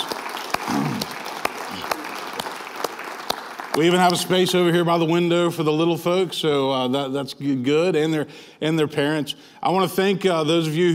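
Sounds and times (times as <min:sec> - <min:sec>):
audience applause for a band: 0:00.0 - 0:04.8
speech: 0:03.8 - 0:10.9.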